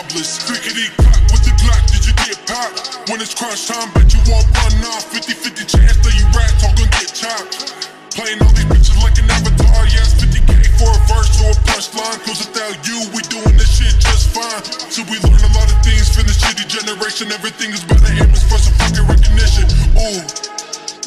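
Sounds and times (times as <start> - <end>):
slowed bass-boosted music: 1.0 - 2.2, 4.0 - 4.8, 5.8 - 7.0, 8.4 - 11.8, 13.5 - 14.4, 15.2 - 16.5, 17.9 - 20.2.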